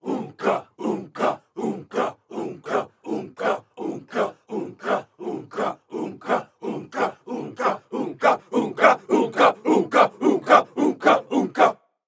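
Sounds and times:
crowd tribal chant: 0.0s - 11.8s.

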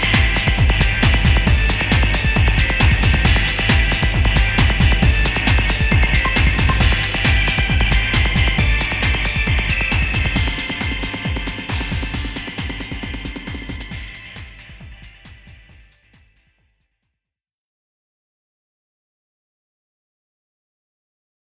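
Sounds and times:
guitar: 0.0s - 15.4s.

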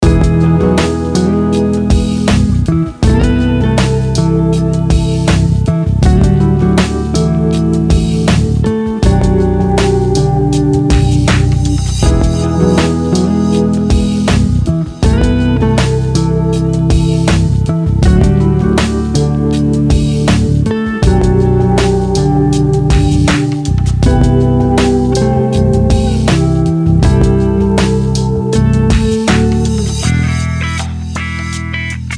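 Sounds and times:
lounge music: 0.0s - 32.1s.

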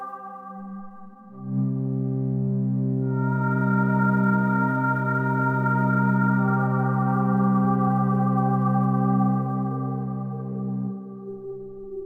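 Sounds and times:
day stinger: 1.4s - 11.9s.

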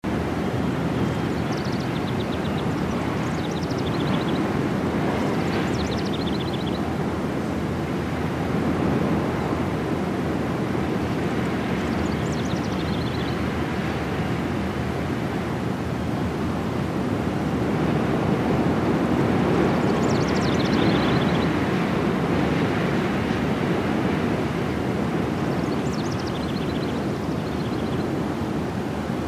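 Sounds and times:
castle exterior ambience with draft: 0.0s - 29.2s.

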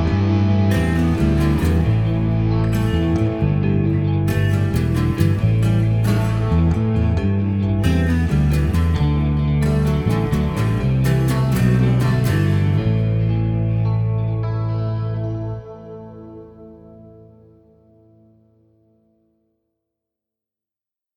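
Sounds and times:
rock music loop: 0.0s - 16.3s.

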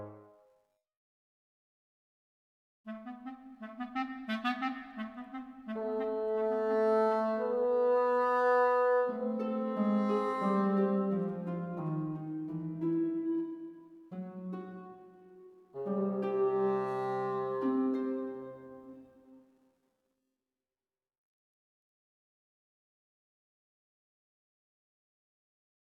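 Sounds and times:
ambient orchestral music: 2.9s - 19.3s.

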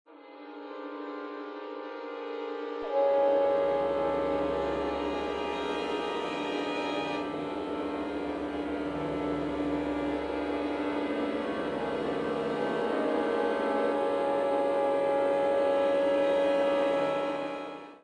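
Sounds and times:
string instruments: 0.1s - 18.0s.

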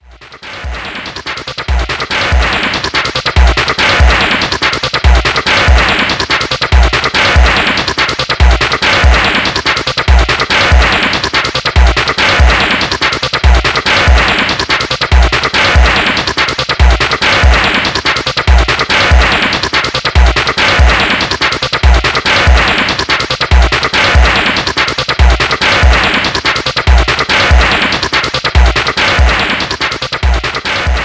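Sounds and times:
techno club music: 0.0s - 31.0s.

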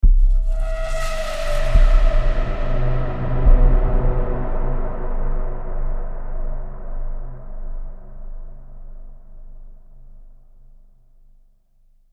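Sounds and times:
soundtrack stinger: 0.2s - 6.7s.

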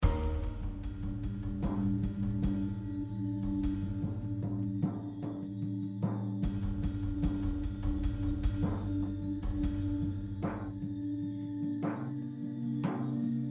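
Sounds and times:
metal harp hits: 0.0s - 2.4s
drums: 0.0s - 13.4s.

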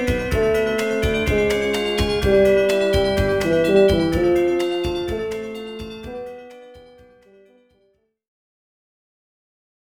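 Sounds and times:
synthesizer: 0.0s - 7.6s.

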